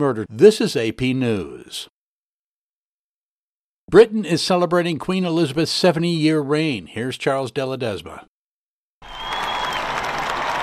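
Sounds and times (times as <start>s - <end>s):
speech: 0.0s - 1.9s, 3.9s - 8.3s
large crowd cheering and applauding the Queen at Buckingham Palace: 9.0s - 10.6s.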